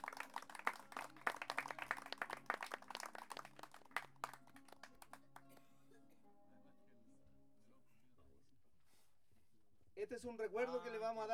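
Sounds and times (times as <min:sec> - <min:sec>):
audience applause: 0:00.0 - 0:05.4
speech: 0:10.1 - 0:11.3.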